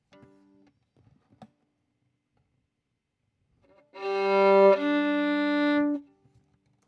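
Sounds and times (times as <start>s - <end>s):
violin: 3.8s - 6.2s.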